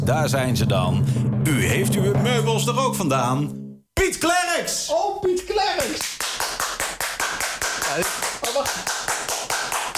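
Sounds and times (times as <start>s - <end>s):
speech: 0.1s - 6.2s, 7.9s - 9.1s
rhythmic clapping: 5.2s - 9.9s.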